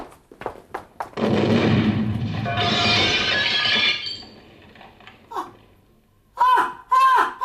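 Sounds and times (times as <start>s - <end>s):
bomb explosion: 1.2s - 5.8s
girl shrieking: 6.4s - 7.4s.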